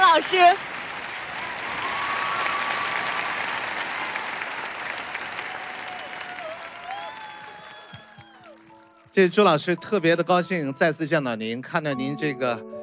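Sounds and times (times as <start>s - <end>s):
warm audience applause: 0.0s - 9.1s
speech: 0.2s - 0.7s, 9.2s - 12.8s.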